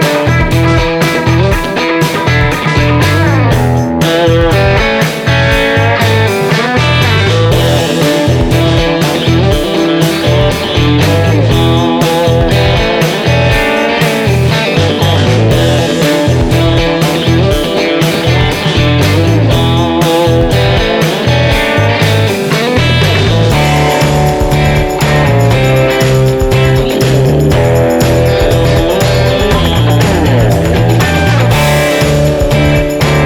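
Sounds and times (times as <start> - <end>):
blues rock music at 120 BPM: 0.0 - 33.2.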